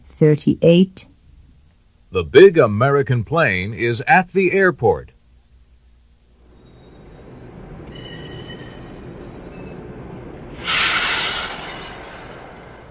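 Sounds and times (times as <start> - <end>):
speech: 0.2 - 1.1, 2.1 - 5.1
small French train: 6.6 - 12.8.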